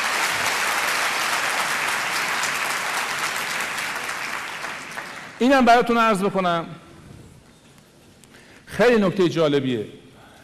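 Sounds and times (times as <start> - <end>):
audience at a talk on stress applauding after a breathing exercise: 0.0 - 5.4
speech: 5.4 - 6.8, 8.8 - 10.0.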